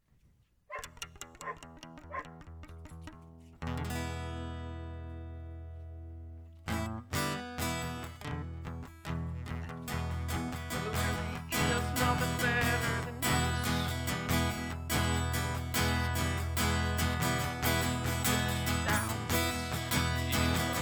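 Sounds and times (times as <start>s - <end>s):
blues music: 0.7s - 20.8s.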